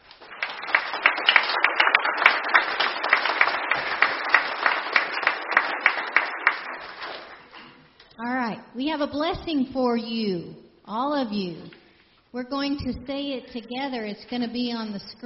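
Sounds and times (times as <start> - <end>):
audience applauding: 0.0 - 7.6
speech: 8.8 - 15.2.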